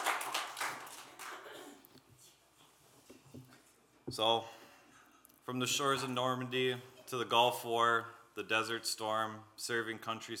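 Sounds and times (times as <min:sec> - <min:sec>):
room of people applauding veterans: 0:00.0 - 0:01.8
speech: 0:04.1 - 0:04.6, 0:05.5 - 0:10.3.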